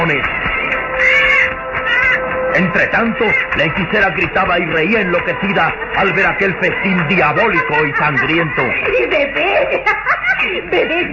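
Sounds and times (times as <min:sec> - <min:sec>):
speech: 0:00.1 - 0:00.4, 0:02.6 - 0:11.1
bats shrieking: 0:00.1 - 0:06.4
laughter: 0:02.6 - 0:11.1.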